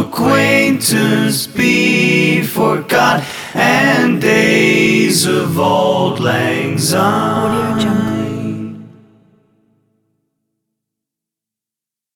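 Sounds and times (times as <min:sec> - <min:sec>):
a cappella singing: 0:00.0 - 0:09.4.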